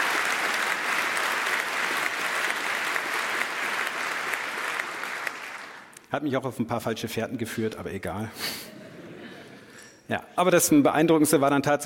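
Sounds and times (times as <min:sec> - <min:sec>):
applause: 0:00.0 - 0:06.0
speech: 0:06.1 - 0:08.8, 0:10.1 - 0:11.8.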